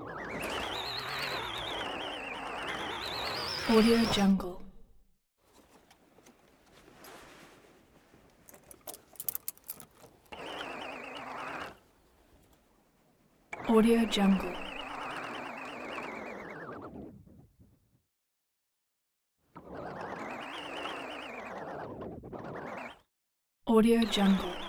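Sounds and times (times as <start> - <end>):
old electric motor with wobbly spin: 0.0 - 4.4, 8.5 - 12.5, 13.5 - 17.0, 19.6 - 23.0, 24.0 - 24.6.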